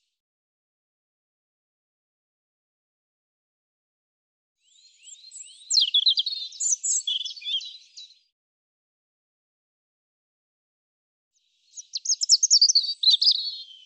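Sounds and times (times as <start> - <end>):
European robin singing warbled phrases: 4.6 - 8.3, 11.6 - 13.8.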